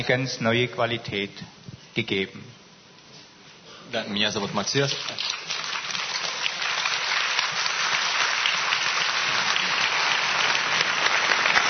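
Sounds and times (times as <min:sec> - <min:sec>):
speech: 0:00.0 - 0:02.6, 0:03.9 - 0:05.4
audience applause: 0:04.7 - 0:11.6.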